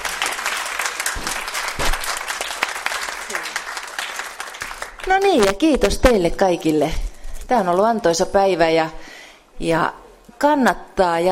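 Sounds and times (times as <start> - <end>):
audience applause: 0.0 - 5.1
speech: 5.1 - 9.0, 9.6 - 11.3.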